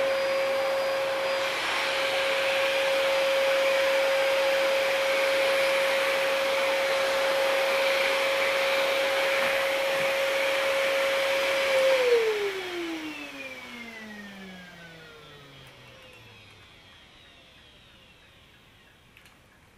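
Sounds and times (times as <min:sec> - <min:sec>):
vacuum cleaner running: 0:00.0 - 0:19.1.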